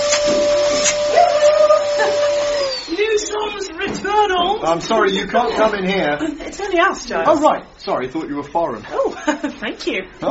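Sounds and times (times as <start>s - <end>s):
vacuum cleaner hoovering loudly: 0.0s - 3.7s
speech: 4.6s - 10.3s.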